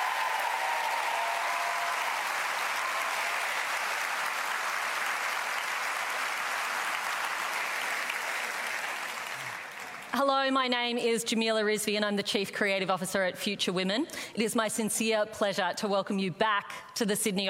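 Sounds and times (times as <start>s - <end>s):
audience applause: 0.0s - 10.2s
speech: 10.2s - 17.4s.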